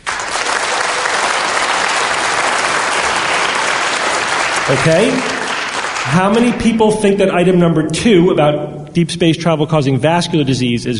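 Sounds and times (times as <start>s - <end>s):
audience applause: 0.0s - 6.9s
speech: 4.7s - 5.4s, 6.1s - 10.9s.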